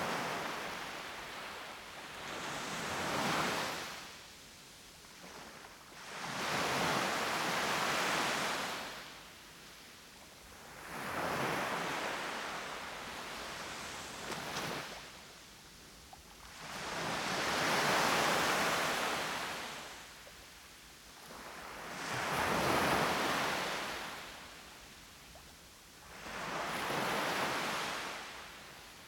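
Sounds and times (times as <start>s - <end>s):
waves on a beach: 0.0s - 29.0s.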